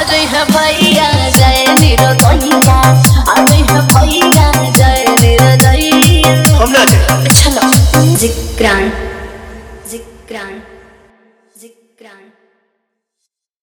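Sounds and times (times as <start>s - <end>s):
Bhojpuri remix song: 0.0s - 9.2s.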